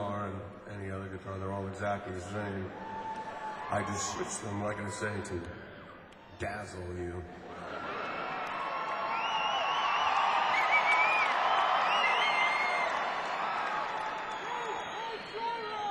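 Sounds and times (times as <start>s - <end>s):
speech: 1.2s - 3.0s, 3.7s - 5.7s, 6.4s - 7.5s
audience applause: 7.5s - 15.8s.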